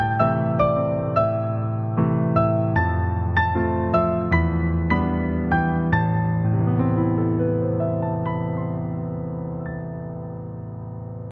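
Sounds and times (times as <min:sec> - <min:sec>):
Vietnamese instrumental piano ringtone melody: 0:00.0 - 0:11.2.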